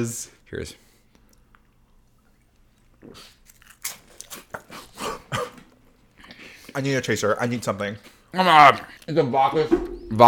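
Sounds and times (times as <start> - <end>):
speech: 0.0 - 0.9, 3.0 - 3.3, 6.8 - 10.2
crunching on a garlic and herb cracker: 1.3 - 6.4.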